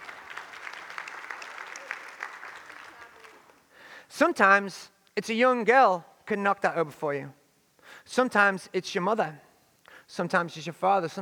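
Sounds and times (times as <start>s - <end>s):
audience applause: 0.0s - 3.6s
speech: 4.1s - 7.4s, 8.0s - 9.4s, 10.1s - 11.1s.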